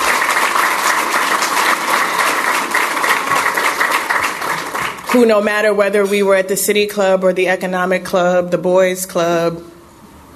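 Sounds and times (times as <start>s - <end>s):
audience applause: 0.0s - 5.4s
speech: 5.1s - 9.7s.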